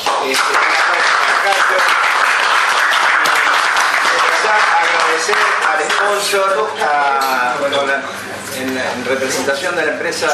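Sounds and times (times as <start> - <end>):
crowd applause: 0.0 - 6.5
speech: 0.2 - 0.7, 4.5 - 10.3.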